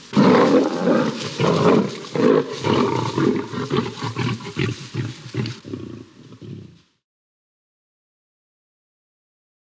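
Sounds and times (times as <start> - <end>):
lion snarling and roaring: 0.1 - 6.8.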